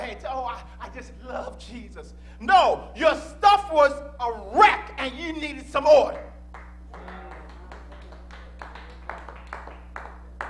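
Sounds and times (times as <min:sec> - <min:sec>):
steady low hum: 0:00.0 - 0:10.4
speech: 0:01.0 - 0:06.3
sparse clapping from a small audience: 0:06.5 - 0:10.4.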